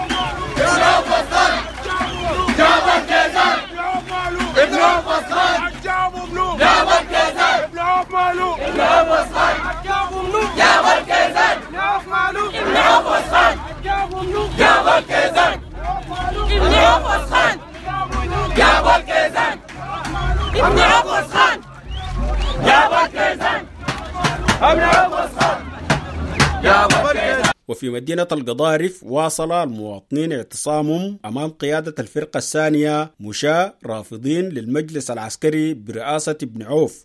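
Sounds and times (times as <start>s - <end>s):
displaced people in Darfur camps chanting: 0.0s - 27.6s
speech: 24.6s - 25.6s, 26.6s - 37.0s.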